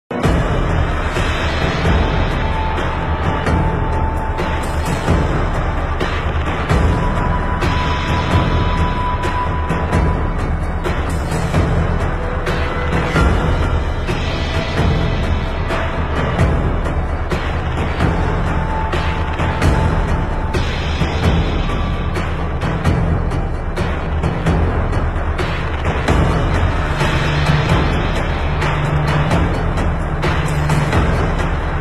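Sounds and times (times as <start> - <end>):
drum: 0.1 - 31.7.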